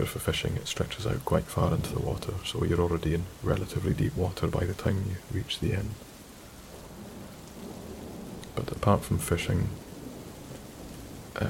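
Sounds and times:
speech: 0.0s - 6.1s, 8.6s - 9.8s
rain: 0.0s - 11.4s
thunder: 6.8s - 11.4s.

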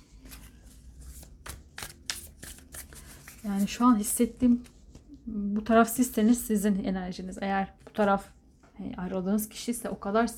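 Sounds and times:
tarot cards flicking and slapping while being picked: 1.2s - 3.4s
speech: 3.4s - 10.3s.

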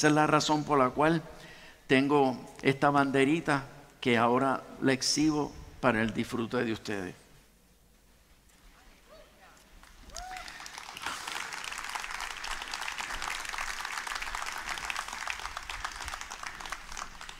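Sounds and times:
speech: 0.0s - 7.2s
audience applause: 9.8s - 17.3s.

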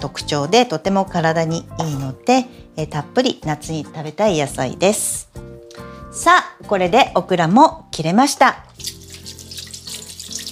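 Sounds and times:
speech: 0.0s - 5.5s, 6.1s - 8.9s
kitchen knife rinsed under running tap water: 8.8s - 10.5s.

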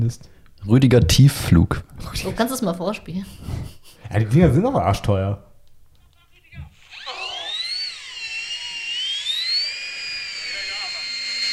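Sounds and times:
speech: 0.0s - 5.5s
model aircraft engine whine: 6.8s - 11.5s.

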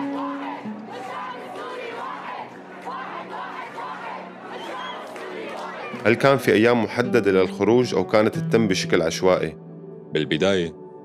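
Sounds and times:
large protest crowd chanting in unison: 0.0s - 6.0s
speech: 6.0s - 10.8s.

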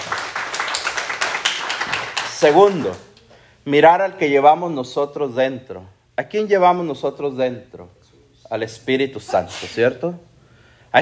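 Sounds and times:
crowd applause: 0.0s - 3.0s
speech: 2.4s - 10.3s.

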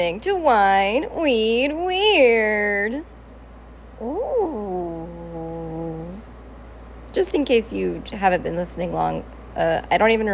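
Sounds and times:
speech: 0.0s - 3.2s, 4.0s - 4.9s, 7.1s - 10.3s
person imitating whale noises: 4.0s - 6.2s.

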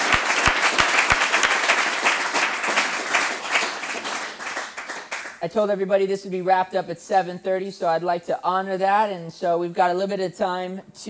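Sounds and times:
audience applause: 0.0s - 5.2s
speech: 5.4s - 11.0s.

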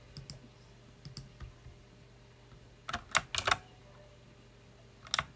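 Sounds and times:
loud mechanical keyboard keystrokes: 0.1s - 0.4s, 1.1s - 1.6s, 2.9s - 3.7s, 5.1s - 5.3s.

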